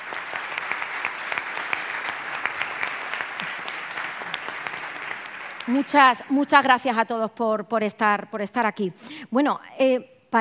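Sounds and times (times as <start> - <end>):
audience applause: 0.0 - 6.6
speech: 5.7 - 10.3.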